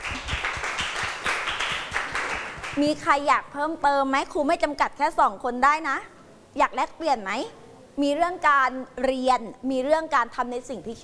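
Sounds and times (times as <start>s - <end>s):
class of students clapping for a classmate: 0.0s - 2.8s
speech: 2.8s - 11.0s.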